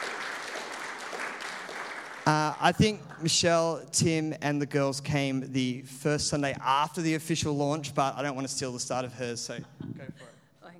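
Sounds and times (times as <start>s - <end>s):
audience applause at a church fifth-birthday celebration: 0.0s - 3.5s
speech: 2.3s - 10.3s.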